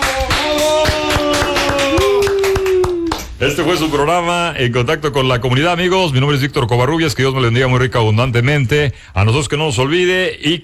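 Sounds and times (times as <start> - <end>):
applause: 0.0 - 3.4
speech: 3.5 - 10.6.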